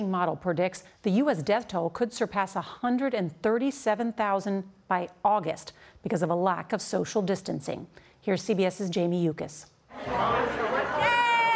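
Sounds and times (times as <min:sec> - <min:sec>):
speech: 0:00.0 - 0:11.2
crowded restaurant chatter: 0:09.9 - 0:11.5.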